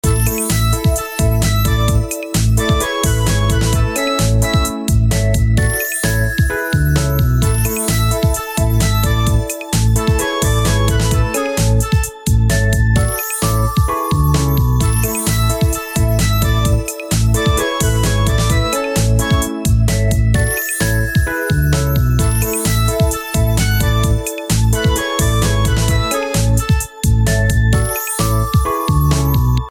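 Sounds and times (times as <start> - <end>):
background music: 0.0 - 29.6.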